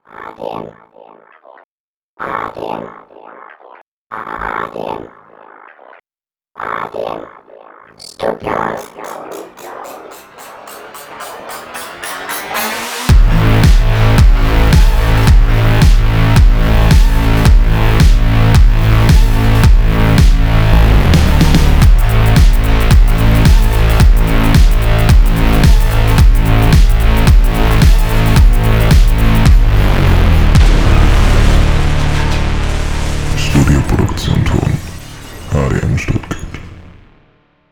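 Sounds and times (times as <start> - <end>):
EDM music: 8.0 - 36.9.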